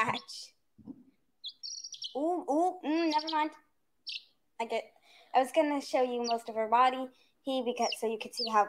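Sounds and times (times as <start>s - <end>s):
speech: 0.0s - 0.5s, 2.2s - 3.6s, 4.6s - 8.6s
small chick chirping: 0.9s - 4.4s, 6.0s - 6.6s, 7.6s - 8.6s.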